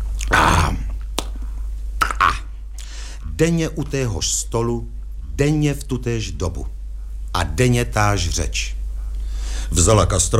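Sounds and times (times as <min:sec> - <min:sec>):
loud lip smack after drinking: 0:00.2 - 0:02.9
speech: 0:03.4 - 0:06.7, 0:07.3 - 0:08.8, 0:09.7 - 0:10.3.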